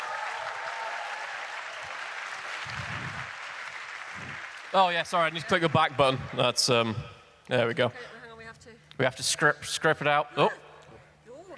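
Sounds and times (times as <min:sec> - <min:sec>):
audience applause: 0:00.0 - 0:06.6
speech: 0:04.7 - 0:08.2, 0:09.0 - 0:10.6.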